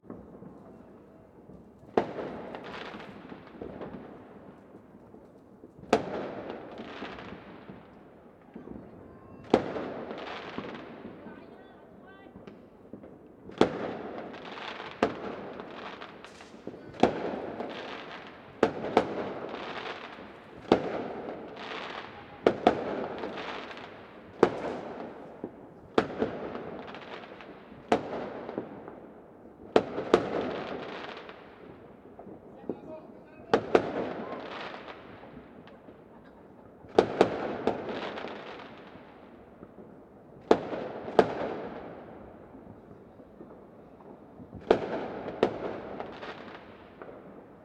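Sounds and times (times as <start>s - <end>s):
fire: 0.0s - 47.6s.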